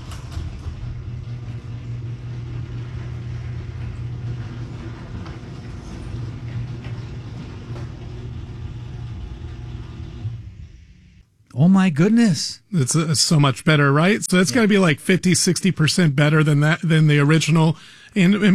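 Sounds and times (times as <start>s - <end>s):
garage door opening and closing: 0.0s - 11.3s
speech: 11.6s - 18.5s.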